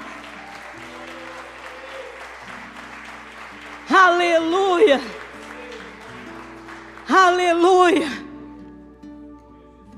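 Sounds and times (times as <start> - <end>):
audience applause: 0.0 - 7.6
speech: 4.3 - 5.2, 7.1 - 8.2.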